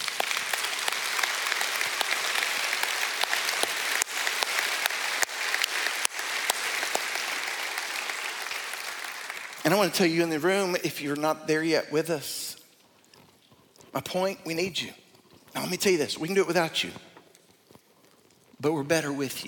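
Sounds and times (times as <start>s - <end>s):
audience applauding: 0.0s - 10.8s
speech: 9.7s - 12.5s, 14.0s - 15.0s, 15.6s - 17.1s, 18.6s - 19.4s.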